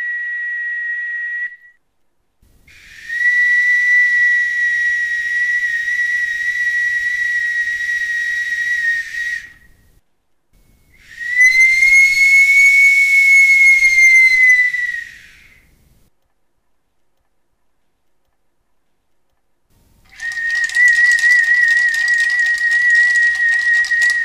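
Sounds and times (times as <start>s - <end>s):
rattle jug with whistle: 2.7s - 9.8s, 10.6s - 15.7s, 20.0s - 24.2s.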